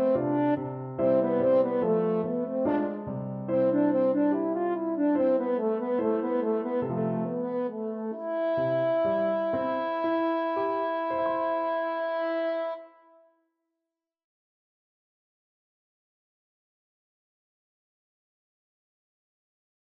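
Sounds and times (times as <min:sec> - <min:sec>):
horn: 0:00.0 - 0:13.4.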